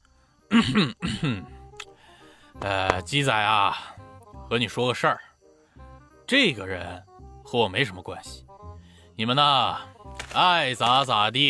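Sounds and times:
person deliberately clearing the throat: 0.5 - 1.6
speech: 0.6 - 1.6, 2.6 - 5.2, 6.3 - 8.4, 9.2 - 11.4.

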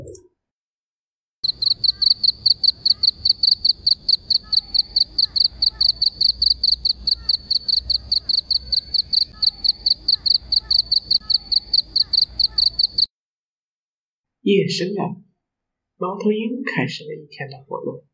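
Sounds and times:
crickets chirping: 1.4 - 13.1
speech: 14.4 - 15.2, 16.0 - 18.1.

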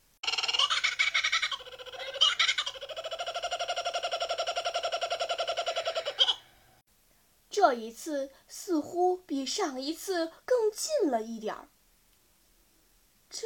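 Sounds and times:
laughing kookaburra call: 0.2 - 6.7
speech: 7.7 - 11.7.

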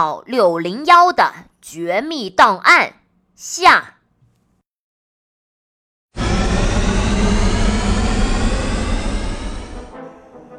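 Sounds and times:
speech: 0.0 - 4.0
spacecraft engines roaring and shaking: 6.2 - 10.3.

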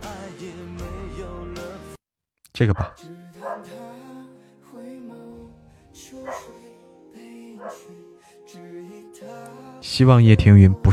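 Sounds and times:
speech: 2.6 - 3.8, 9.4 - 10.9
small dog barking: 2.8 - 3.7, 6.2 - 6.6, 7.6 - 7.9.

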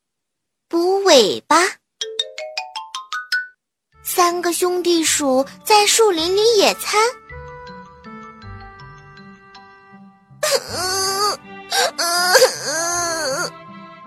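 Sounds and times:
speech: 1.2 - 1.8, 4.1 - 7.2
small lizard crying: 10.4 - 13.5.

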